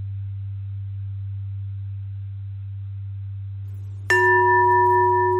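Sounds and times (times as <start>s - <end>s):
pentatonic bell melody: 4.1s - 5.3s.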